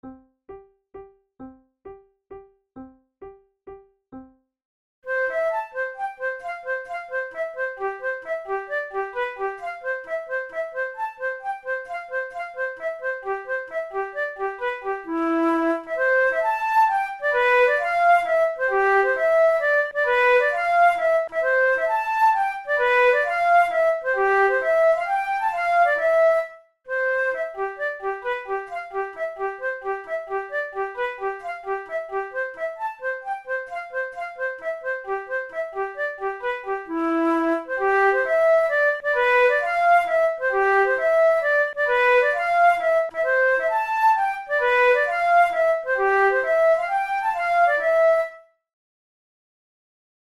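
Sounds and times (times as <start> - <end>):
flute waltz duet: 5.1 - 48.5.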